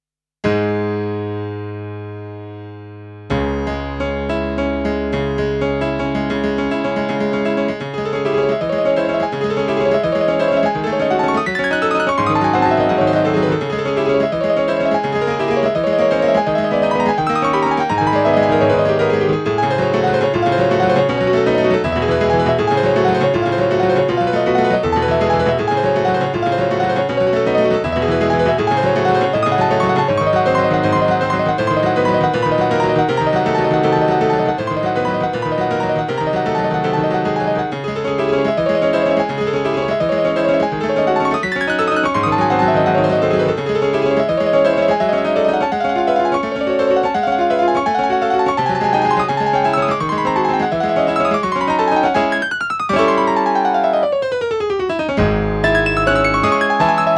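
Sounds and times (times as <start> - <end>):
piano: 0.4 - 57.1.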